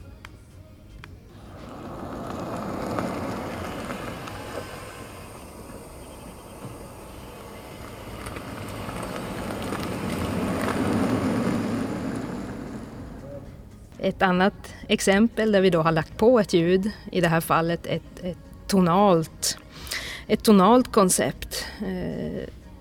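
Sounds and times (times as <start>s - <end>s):
electric vehicle with no added sound approaching a pedestrian crossing, tyre and road noise: 1.3s - 13.9s
speech: 14.0s - 22.6s.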